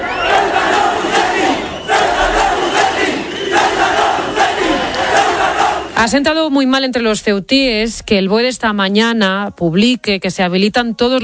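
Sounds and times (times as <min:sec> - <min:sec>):
protest crowd chanting traitor: 0:00.0 - 0:06.2
speech: 0:06.0 - 0:11.2.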